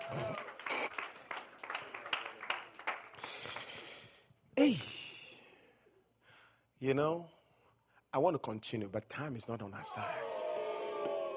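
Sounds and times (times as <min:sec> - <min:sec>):
audience clapping: 0:00.0 - 0:04.2
speech: 0:00.1 - 0:00.5, 0:04.6 - 0:05.0, 0:06.8 - 0:07.4, 0:08.1 - 0:10.4.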